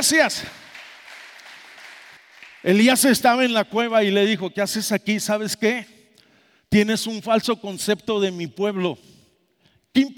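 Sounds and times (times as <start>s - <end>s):
speech: 0.0s - 0.7s, 2.6s - 6.0s, 6.7s - 9.2s, 10.0s - 10.1s
audience applause: 0.5s - 2.6s.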